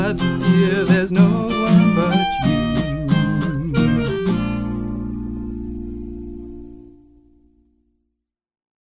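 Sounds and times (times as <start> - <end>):
trio playing tin pan alley music: 0.0 - 5.2.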